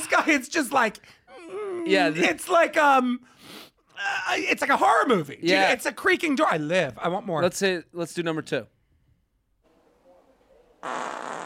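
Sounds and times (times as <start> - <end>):
speech: 0.1 - 1.2, 1.8 - 8.8
wet fart: 10.8 - 11.4.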